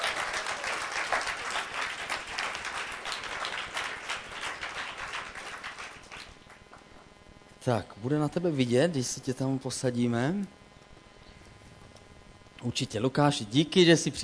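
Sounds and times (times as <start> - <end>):
audience applause: 0.0 - 6.6
speech: 7.6 - 10.6, 12.6 - 14.2.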